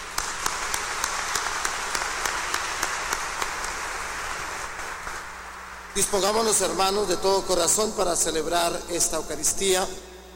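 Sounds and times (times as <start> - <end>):
audience applause: 0.0 - 5.8
speech: 6.0 - 10.1.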